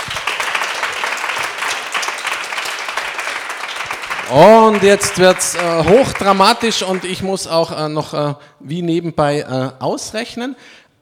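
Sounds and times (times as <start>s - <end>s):
audience applause: 0.0s - 7.5s
speech: 4.3s - 10.8s.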